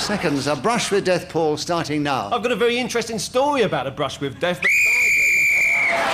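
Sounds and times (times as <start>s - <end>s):
speech: 0.0s - 4.9s
referee's whistle blown: 4.6s - 6.0s.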